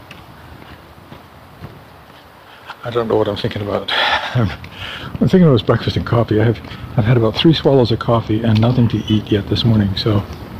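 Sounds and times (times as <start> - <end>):
footsteps of a person walking: 0.0 - 7.6
faint noise: 0.0 - 10.5
speech: 2.8 - 10.4.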